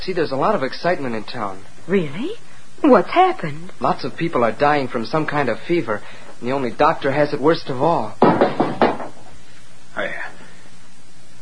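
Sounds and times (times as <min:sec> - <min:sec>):
speech: 0:00.0 - 0:08.6
basin knocked to the floor: 0:08.2 - 0:09.2.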